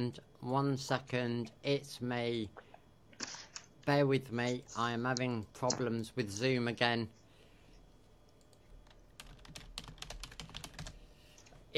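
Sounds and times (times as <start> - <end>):
speech: 0.0 - 2.6, 3.9 - 7.2
typing on a computer keyboard during a Zoom chat: 8.3 - 11.0.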